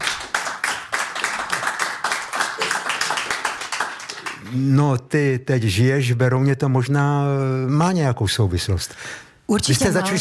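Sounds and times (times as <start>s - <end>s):
audience applause: 0.0s - 4.5s
speech: 4.5s - 10.1s.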